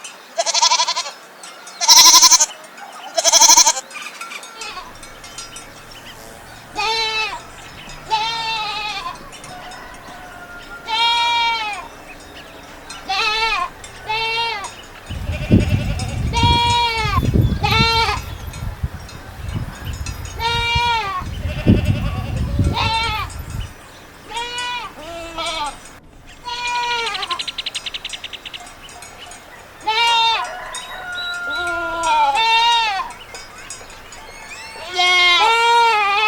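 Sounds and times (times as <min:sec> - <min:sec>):
goat bleating: 0:00.4 - 0:01.2, 0:01.8 - 0:02.5, 0:03.2 - 0:03.8, 0:04.6 - 0:18.5, 0:20.3 - 0:23.6, 0:24.3 - 0:25.8, 0:26.4 - 0:27.5, 0:29.8 - 0:30.5, 0:31.5 - 0:33.2, 0:34.5 - 0:36.2
low rumbling background: 0:04.8 - 0:24.4.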